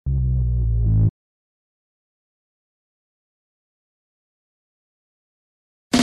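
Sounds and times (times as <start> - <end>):
film music: 0.1 - 1.1.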